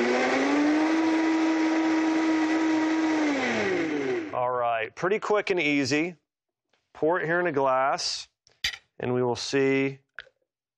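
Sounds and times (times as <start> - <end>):
blender blending a drink: 0.0 - 4.4
speech: 5.0 - 6.2, 7.0 - 8.3, 9.0 - 10.3.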